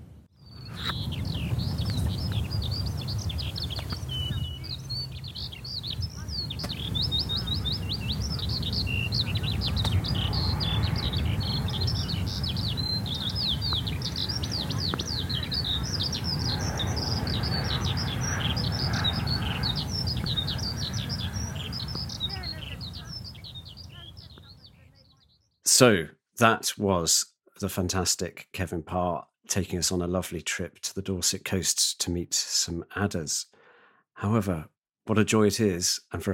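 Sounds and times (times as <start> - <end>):
skylark singing by the sea: 0.4 - 25.6
speech: 25.8 - 33.6, 34.2 - 36.3.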